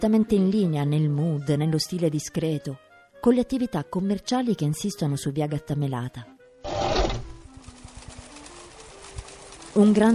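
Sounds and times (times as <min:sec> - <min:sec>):
speech: 0:00.0 - 0:06.3, 0:09.8 - 0:10.1
burst of mechanical noise: 0:06.7 - 0:07.4
sewing machine running: 0:06.7 - 0:10.1.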